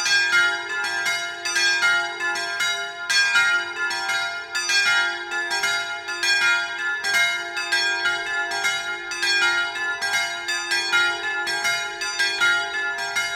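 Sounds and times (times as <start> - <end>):
bells ringing in Sottomonte: 0.0 - 13.3.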